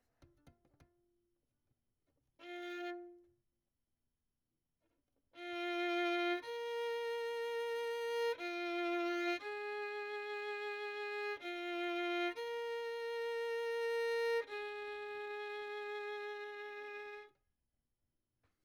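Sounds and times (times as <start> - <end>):
violin: 2.4 - 3.3, 5.4 - 17.4.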